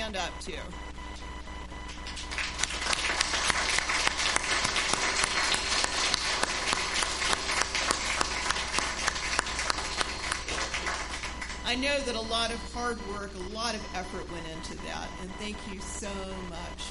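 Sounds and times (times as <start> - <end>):
speech: 0.1 - 1.0, 11.7 - 16.8
audience applause: 2.0 - 11.7.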